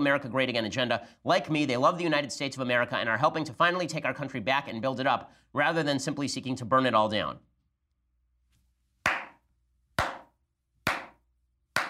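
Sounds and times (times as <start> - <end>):
speech: 0.0 - 7.5
slow hand claps: 9.1 - 9.4, 10.0 - 10.3, 10.9 - 11.2.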